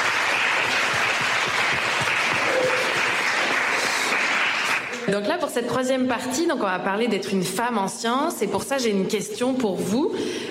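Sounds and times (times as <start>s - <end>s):
audience applause: 0.0s - 5.1s
speech: 5.1s - 10.4s.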